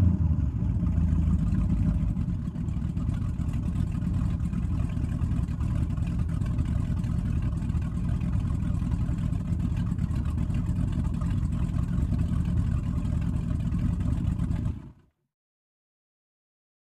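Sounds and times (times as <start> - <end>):
offshore power boat engine starting and idling heard from interior: 0.2 - 15.0.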